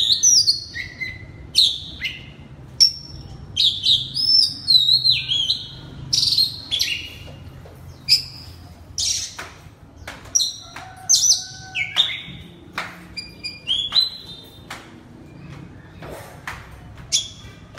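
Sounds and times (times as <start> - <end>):
Oriental magpie-robin song: 0.0 - 12.6, 13.2 - 14.7.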